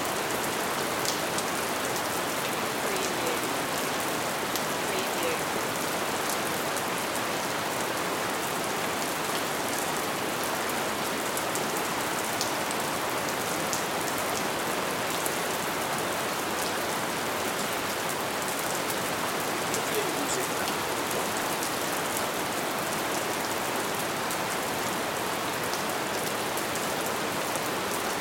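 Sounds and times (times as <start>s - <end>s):
rainstorm: 0.0s - 28.1s.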